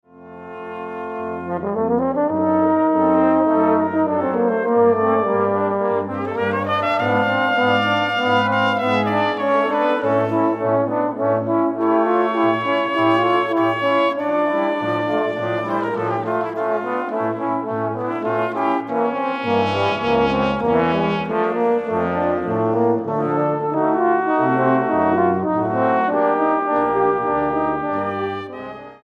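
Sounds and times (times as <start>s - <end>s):
sonata in B flat major: 0.0s - 29.0s.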